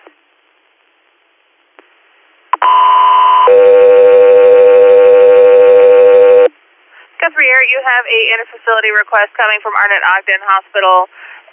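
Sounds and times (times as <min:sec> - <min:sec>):
dispatch alert tones: 0:02.6 - 0:06.5
speech: 0:07.4 - 0:11.4.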